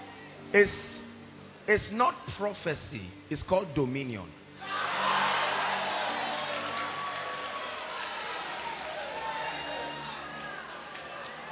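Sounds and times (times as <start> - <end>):
speech: 0.5 - 0.9, 1.7 - 4.7
audience shouting: 4.6 - 11.5.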